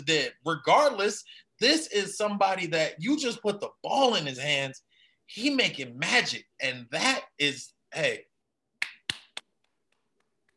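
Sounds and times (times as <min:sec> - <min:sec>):
speech: 0:00.0 - 0:08.3
hand claps: 0:08.8 - 0:09.5.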